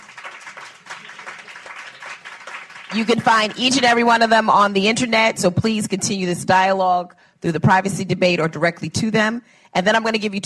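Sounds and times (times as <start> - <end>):
audience applause for panelists at the close of a panel discussion: 0.0 - 4.0
speech: 2.9 - 10.4.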